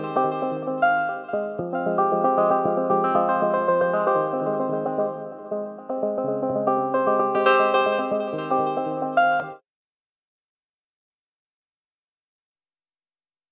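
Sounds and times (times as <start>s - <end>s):
synth arpeggios: 0.0s - 9.6s.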